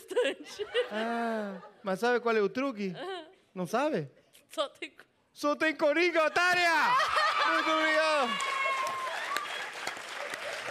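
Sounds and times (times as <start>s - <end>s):
laughter: 0.0s - 2.0s, 6.5s - 8.3s
speech: 0.2s - 8.6s
audience clapping: 7.1s - 10.7s.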